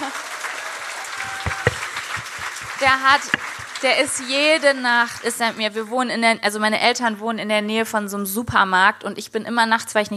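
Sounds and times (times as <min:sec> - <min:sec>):
audience applause: 0:00.0 - 0:05.8
speech: 0:02.8 - 0:10.1.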